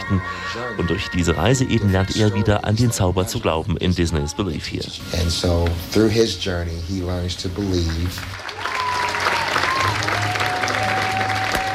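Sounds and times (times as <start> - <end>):
speech: 0.1 - 8.7
theater audience applause: 7.6 - 11.7.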